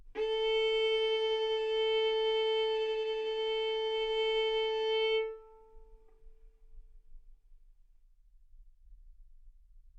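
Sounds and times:
violin bowed arco notes: 0:00.0 - 0:06.4.

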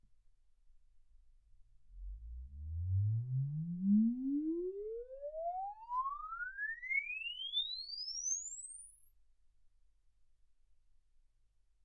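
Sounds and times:
exponential sine sweep from 10 Hz to 24 kHz: 0:02.0 - 0:09.5.

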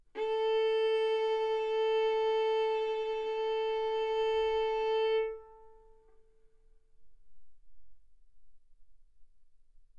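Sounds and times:
violin arco on A string: 0:00.1 - 0:06.2.

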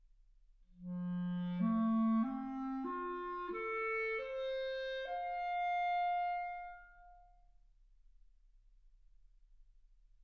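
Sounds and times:
clarinet: 0:00.8 - 0:07.4.

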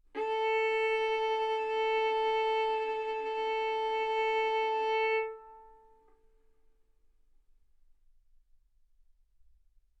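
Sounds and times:
violin bowed arco notes: 0:00.1 - 0:06.1.

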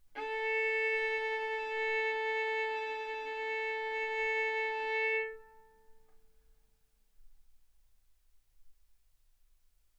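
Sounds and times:
violin bowed arco notes: 0:00.2 - 0:06.1.

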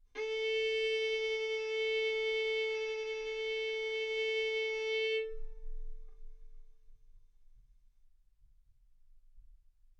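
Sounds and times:
violin arco on A string: 0:00.2 - 0:05.8.

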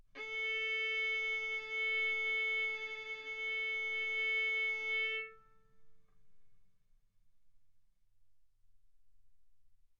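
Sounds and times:
violin arco on A string: 0:00.2 - 0:05.4.

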